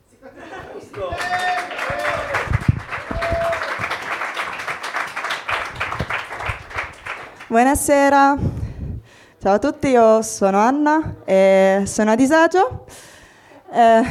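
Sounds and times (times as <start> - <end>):
laughter: 0.1 - 4.0
audience applause: 0.9 - 7.5
speech: 1.0 - 1.4, 7.6 - 8.5, 9.4 - 13.0, 13.7 - 14.0.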